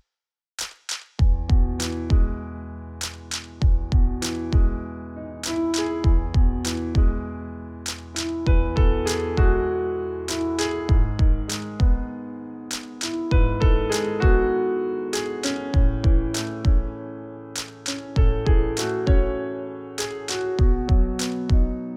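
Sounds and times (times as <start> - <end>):
pianos and orchestra: 1.3 - 21.9.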